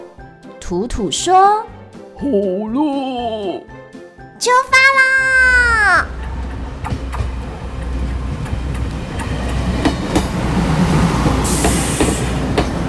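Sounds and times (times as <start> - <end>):
speech: 0.7 - 3.8, 4.4 - 6.1
train rumbling along the tracks: 6.1 - 12.8.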